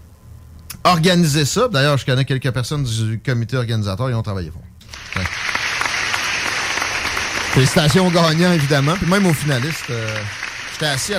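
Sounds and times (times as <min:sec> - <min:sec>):
speech: 0:00.8 - 0:05.4, 0:07.6 - 0:11.1
crowd applause: 0:04.8 - 0:11.1.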